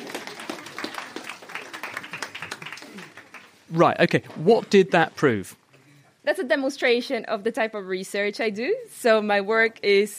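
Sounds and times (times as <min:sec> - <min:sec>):
audience applause: 0:00.0 - 0:04.2
speech: 0:03.7 - 0:05.6, 0:06.2 - 0:10.1.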